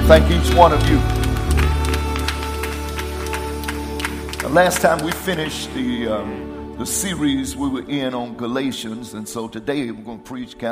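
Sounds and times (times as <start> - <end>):
audience applause: 0.0 - 5.6
speech: 0.1 - 1.2, 4.5 - 10.6.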